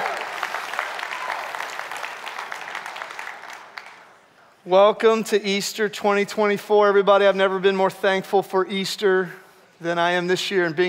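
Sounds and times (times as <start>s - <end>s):
church congregation applauding at an Easter service: 0.0s - 4.3s
speech: 4.7s - 10.8s.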